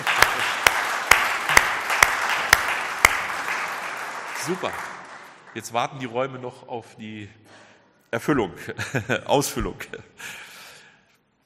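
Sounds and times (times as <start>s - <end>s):
audience applause: 0.0s - 5.7s
sharper clap at a regular beat: 0.0s - 5.9s
speech: 4.5s - 4.9s, 5.5s - 7.4s, 8.1s - 10.4s.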